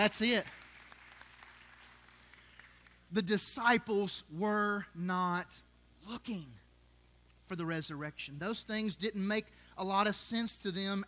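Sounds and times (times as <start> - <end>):
speech: 0.0 - 0.6, 3.1 - 6.6, 7.5 - 11.0
audience clapping hands in praise: 0.0 - 3.1.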